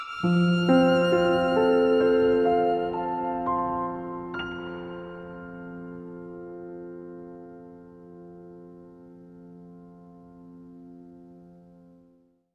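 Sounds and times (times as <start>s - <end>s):
waltz music: 0.2s - 8.5s.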